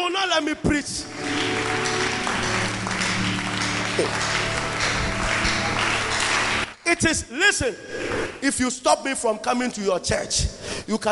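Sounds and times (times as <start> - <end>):
speech: 0.2 - 1.5, 4.0 - 4.4, 6.9 - 11.1
audience clapping hands: 1.0 - 7.1.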